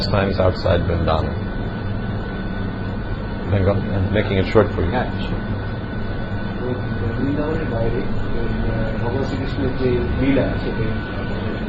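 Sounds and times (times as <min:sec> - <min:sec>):
loud air conditioning running: 0:00.0 - 0:11.6
speech: 0:00.1 - 0:01.5, 0:03.5 - 0:05.7, 0:06.7 - 0:11.4.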